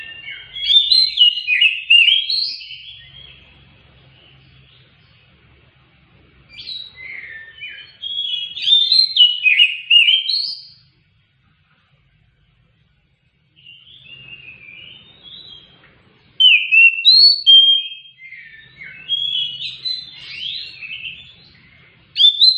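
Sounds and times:
Oriental magpie-robin song: 0.0 - 5.8, 6.4 - 11.0, 13.5 - 22.5.

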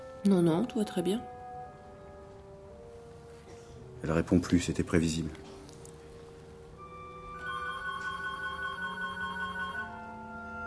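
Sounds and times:
speech: 0.2 - 1.4, 4.0 - 5.5
telephone ringing: 7.3 - 10.3.

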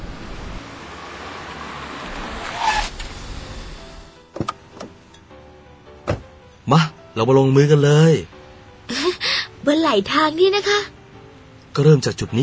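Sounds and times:
car pulling over and parking on the roadside by a rice field: 0.0 - 5.2
speech: 6.7 - 8.4, 9.6 - 10.9, 11.8 - 12.4.

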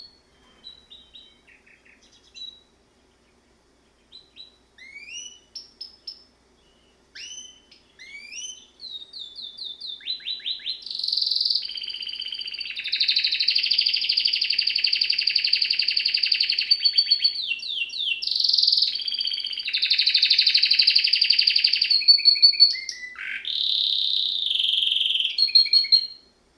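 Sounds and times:
domestic canary singing rolling trills: 0.0 - 26.3.

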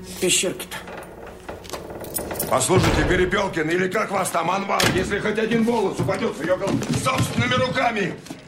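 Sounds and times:
speech: 0.1 - 0.9, 2.5 - 8.3
metal door handle being turned: 0.8 - 3.4.

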